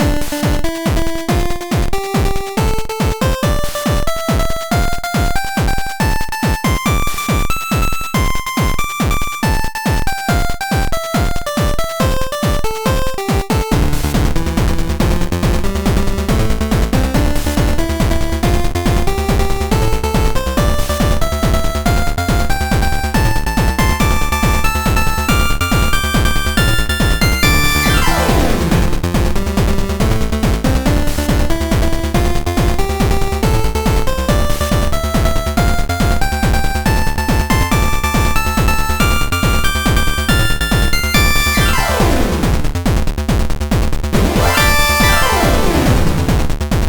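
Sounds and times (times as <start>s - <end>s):
8-bit music: 0.0s - 42.9s, 44.2s - 46.7s.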